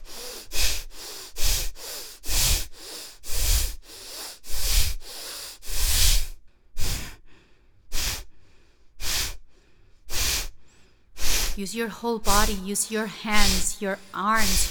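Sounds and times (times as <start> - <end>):
forceful exhaling breaths during a breathing exercise: 0.0 - 11.6
speech: 11.6 - 14.7.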